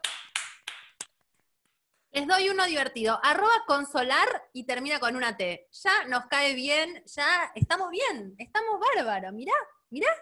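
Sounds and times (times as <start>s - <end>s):
hand clapping: 0.0s - 1.4s
speech: 2.2s - 10.2s.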